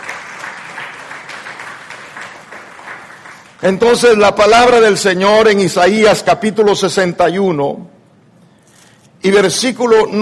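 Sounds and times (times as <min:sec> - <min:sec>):
audience applause: 0:00.0 - 0:03.7
speech: 0:03.6 - 0:08.0, 0:09.2 - 0:10.2.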